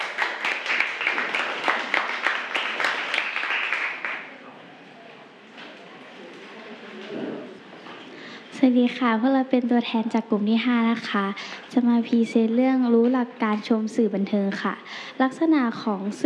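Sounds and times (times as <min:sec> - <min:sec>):
classroom applause: 0:00.0 - 0:04.4
quiet murmur: 0:00.1 - 0:14.8
speech: 0:08.6 - 0:16.2.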